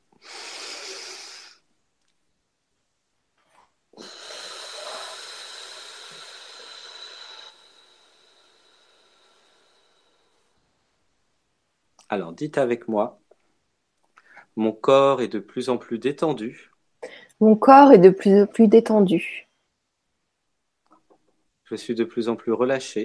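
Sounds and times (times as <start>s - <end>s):
deep breath: 0.0s - 1.7s, 3.5s - 10.8s, 14.1s - 14.6s, 17.0s - 17.4s
speech: 12.1s - 13.2s, 14.6s - 16.7s, 17.4s - 19.4s, 21.7s - 23.0s.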